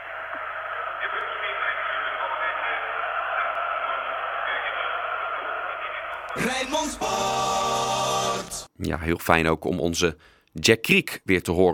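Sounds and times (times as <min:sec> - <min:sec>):
football stadium crowd: 0:00.0 - 0:08.7
speech: 0:06.4 - 0:07.8, 0:08.8 - 0:11.7.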